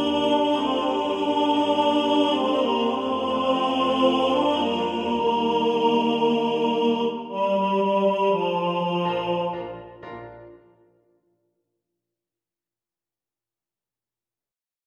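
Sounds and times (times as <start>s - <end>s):
tenor voice singing in the foreground: 0.0s - 10.3s.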